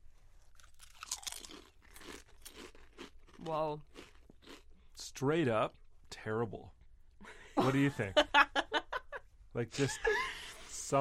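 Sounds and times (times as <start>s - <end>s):
crunching and chewing on potato chips: 0.4s - 5.1s
speech: 3.5s - 3.9s, 5.2s - 6.8s, 7.6s - 8.5s, 9.5s - 10.3s.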